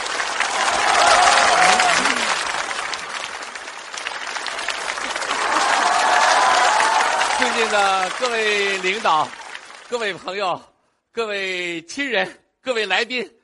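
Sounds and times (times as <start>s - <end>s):
audience applause: 0.0s - 10.4s
speech: 7.7s - 13.4s.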